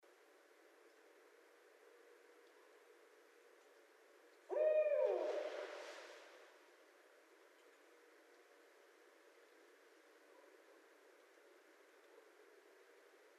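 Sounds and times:
barred owl hooting: 4.5s - 5.7s.

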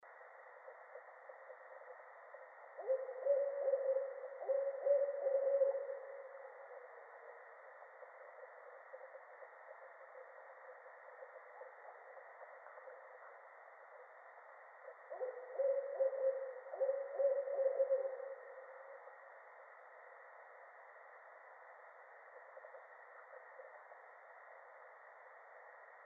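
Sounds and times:
barred owl hooting: 2.7s - 10.4s, 14.8s - 19.1s.

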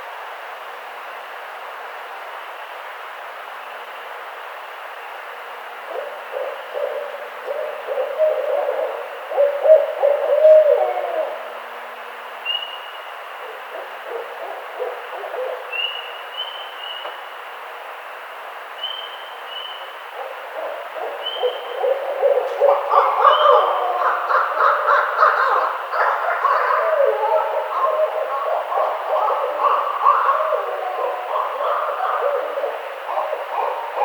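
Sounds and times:
barred owl hooting: 5.6s - 17.4s, 18.8s - 34.0s.

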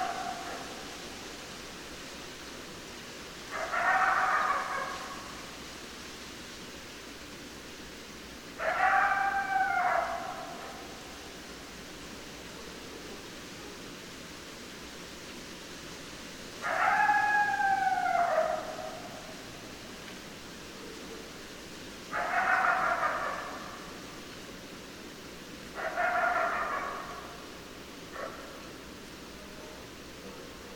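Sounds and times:
coyote howling and yelping: 0.0s - 0.8s, 3.5s - 5.4s, 8.6s - 11.0s, 16.6s - 19.4s, 22.1s - 24.0s, 25.8s - 27.5s
hiss: 0.0s - 30.7s.

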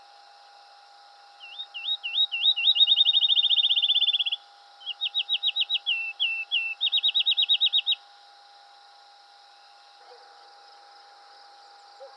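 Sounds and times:
field sparrow singing: 1.4s - 8.0s.

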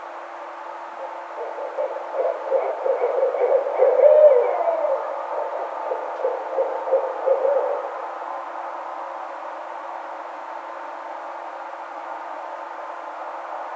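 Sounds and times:
Barred owl hooting: 1.0s - 8.2s.

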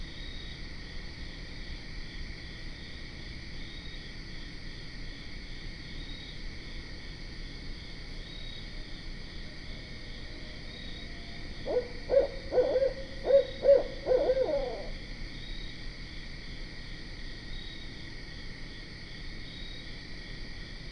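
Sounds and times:
barred owl chorus hooting and cackling: 11.4s - 15.0s.

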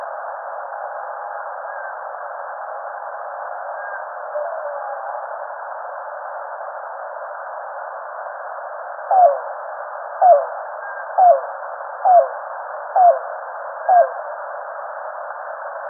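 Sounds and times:
yellow-billed cuckoo call series: 9.1s - 9.5s, 10.2s - 12.4s, 13.0s - 14.2s.

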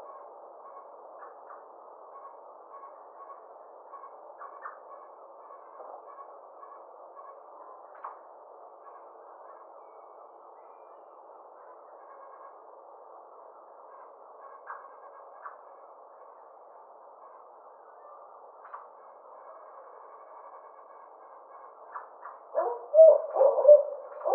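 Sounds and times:
Barred owl giving low hoots: 21.9s - 24.3s.

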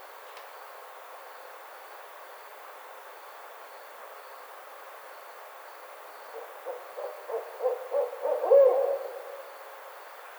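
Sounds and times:
barred owl rhythmic hoots: 6.6s - 9.4s.

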